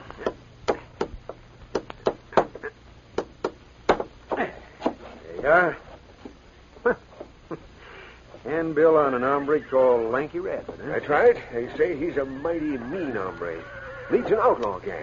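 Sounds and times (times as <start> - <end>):
hammering a tack into a wall: 0.2 - 2.6, 3.2 - 5.0
speech: 5.4 - 5.8, 6.8 - 7.0, 8.5 - 15.0.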